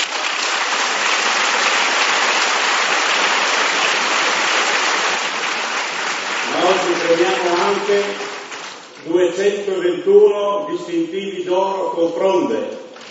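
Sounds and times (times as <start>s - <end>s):
audience applause: 0.0s - 9.1s
speech: 7.1s - 8.2s, 9.1s - 12.8s.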